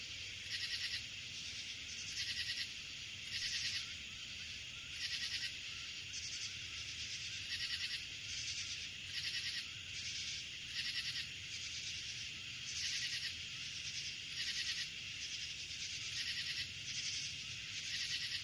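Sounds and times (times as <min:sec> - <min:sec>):
crickets chirping: 0:00.0 - 0:18.4.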